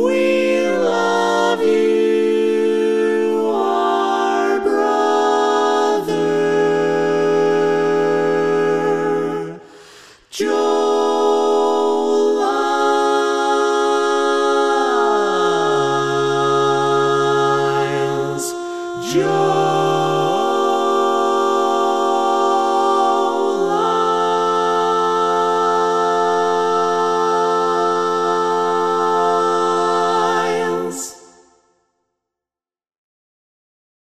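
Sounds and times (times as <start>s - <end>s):
tenor part of an SATB choir singing: 0.0s - 31.5s.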